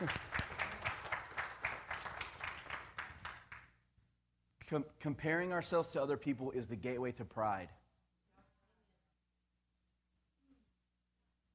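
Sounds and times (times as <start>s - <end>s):
clapping: 0.0s - 3.8s
speech: 4.7s - 7.8s.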